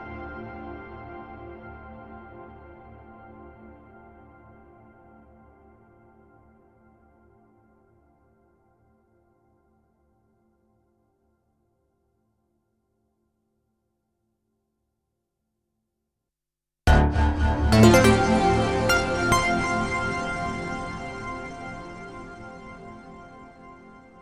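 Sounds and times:
PPG-style modal synthesizer: 17.7 - 23.4.

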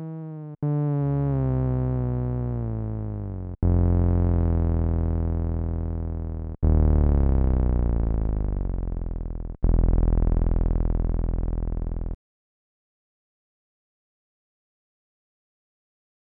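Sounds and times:
Korg Nubass saw synth bass with sub: 0.0 - 12.2.

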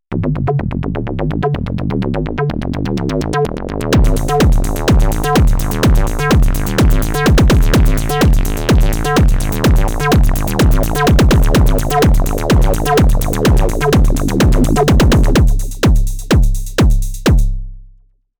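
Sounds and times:
bubbling acid techno: 0.1 - 17.5.

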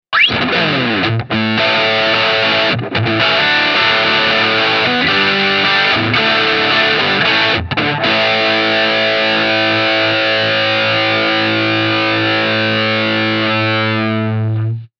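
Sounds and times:
punk music: 0.2 - 14.6.

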